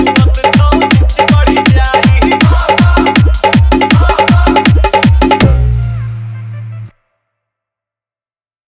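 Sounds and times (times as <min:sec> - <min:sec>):
Holi hard bass music mix: 0:00.0 - 0:06.9.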